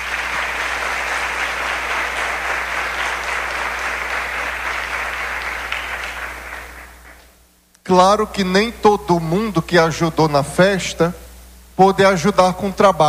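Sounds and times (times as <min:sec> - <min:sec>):
audience applause: 0:00.0 - 0:07.2
speech: 0:07.9 - 0:11.2, 0:11.8 - 0:13.0.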